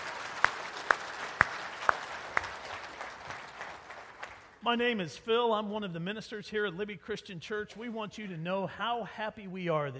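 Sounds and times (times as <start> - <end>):
audience applause: 0.0 - 4.6
speech: 4.6 - 9.9.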